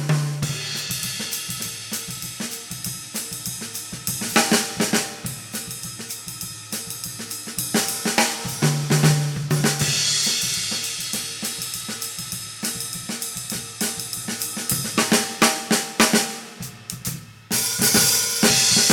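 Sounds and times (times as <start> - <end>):
jazz drums: 0.0 - 18.9.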